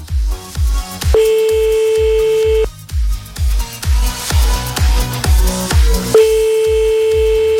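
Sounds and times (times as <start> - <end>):
rhythmic music bed with a punchy beat: 0.0 - 7.5
telephone ringing on an outgoing radio call: 1.2 - 2.7, 6.2 - 7.5.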